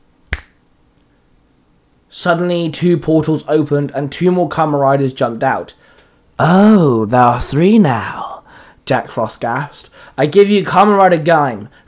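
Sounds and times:
finger snap: 0:00.2 - 0:00.6
speech: 0:02.1 - 0:05.8, 0:06.4 - 0:08.2, 0:08.9 - 0:11.8.

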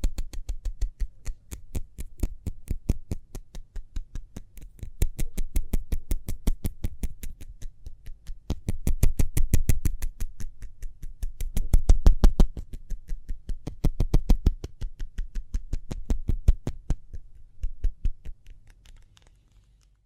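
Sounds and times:
hands tapping rapidly: 0:00.0 - 0:19.3.

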